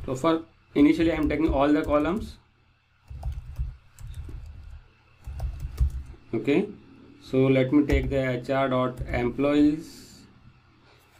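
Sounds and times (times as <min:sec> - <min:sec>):
speech: 0:00.1 - 0:02.4, 0:06.3 - 0:10.0
computer keyboard typing an SQL inner join query: 0:00.9 - 0:02.4, 0:03.0 - 0:06.2, 0:09.0 - 0:09.3.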